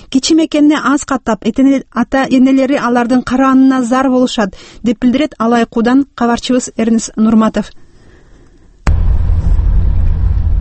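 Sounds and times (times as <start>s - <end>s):
speech: 0.1s - 7.8s
UAZ off-road vehicle driving a rough mountain road: 8.9s - 10.5s.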